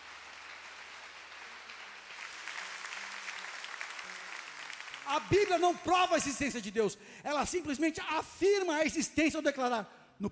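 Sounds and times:
audience applauding: 0.0s - 6.4s
speech: 5.1s - 10.2s.

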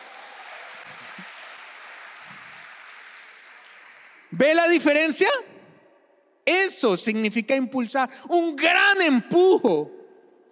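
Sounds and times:
audience applause: 0.0s - 4.4s
speech: 4.3s - 5.5s, 6.5s - 10.0s.

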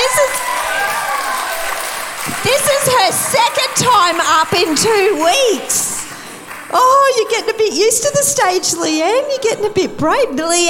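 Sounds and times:
audience cheers: 0.0s - 6.1s
audience clapping: 0.0s - 7.6s
speech: 4.0s - 6.0s, 6.7s - 10.6s.

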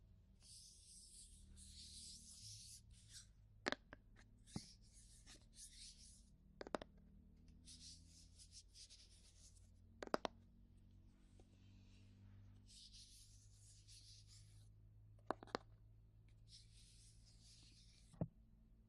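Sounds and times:
low steady hum: 0.0s - 18.8s
soft rubbing and brushing of an ear massage: 0.4s - 3.3s, 4.4s - 6.2s, 7.6s - 9.7s, 11.1s - 14.6s, 16.5s - 18.2s.

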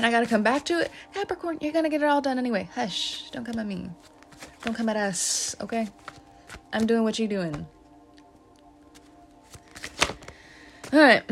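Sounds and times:
speech: 0.0s - 7.8s, 10.9s - 11.3s
tarot cards drawn from a deck rustling and snapping: 3.1s - 11.0s.

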